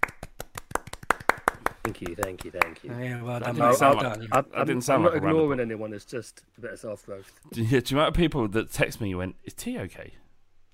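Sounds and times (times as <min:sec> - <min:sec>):
hand clapping: 0:00.0 - 0:02.8
speech: 0:01.8 - 0:10.2.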